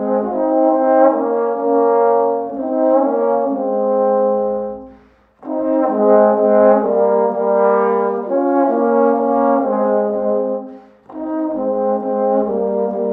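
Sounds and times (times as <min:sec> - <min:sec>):
trombone playing a German folk tune: 0:00.0 - 0:13.1.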